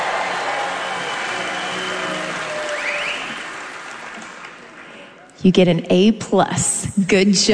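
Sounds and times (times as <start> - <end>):
crowd clapping and cheering: 0.0 - 5.3
crowd whoops and whistles: 0.6 - 3.4
speech: 5.4 - 7.5.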